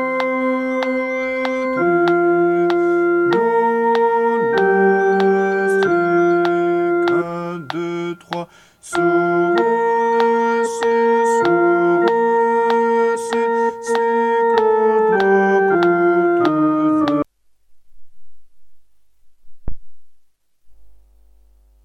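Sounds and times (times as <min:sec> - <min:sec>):
bass vocal part: 0:00.0 - 0:17.2.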